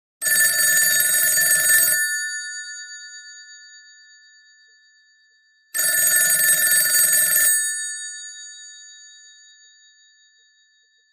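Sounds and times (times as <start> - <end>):
telephone: 0.2 - 2.2, 5.8 - 7.8.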